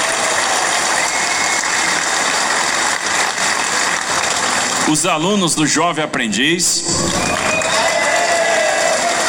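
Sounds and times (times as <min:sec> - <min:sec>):
audience cheering: 0:00.0 - 0:05.0, 0:06.8 - 0:09.2
audience applause: 0:00.0 - 0:05.8, 0:06.9 - 0:09.2
speech: 0:04.9 - 0:07.7.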